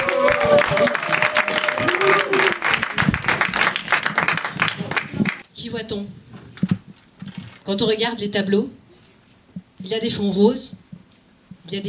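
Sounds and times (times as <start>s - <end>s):
audience applause: 0.0s - 5.4s
crowd noise: 0.0s - 5.4s
speech: 0.5s - 1.3s, 5.7s - 6.3s, 7.7s - 8.8s, 9.8s - 10.8s, 11.7s - 11.8s.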